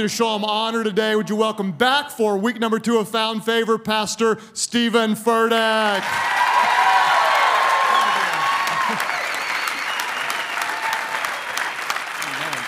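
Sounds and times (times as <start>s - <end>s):
speech: 0.0s - 6.5s
church congregation applauding during a service: 6.0s - 12.6s.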